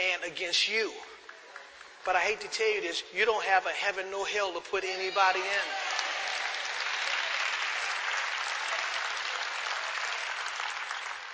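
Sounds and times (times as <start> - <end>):
speech: 0.3 - 1.2, 2.0 - 6.3
audience clapping: 1.2 - 2.5, 5.6 - 11.3.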